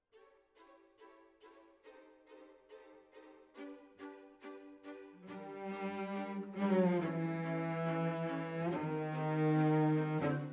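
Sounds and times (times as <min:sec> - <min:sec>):
cellos playing: 0:04.6 - 0:10.5.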